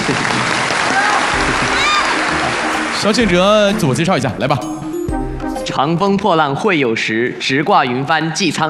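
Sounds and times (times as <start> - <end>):
audience applause: 0.0 - 4.6
speech: 3.0 - 4.8, 5.8 - 8.6.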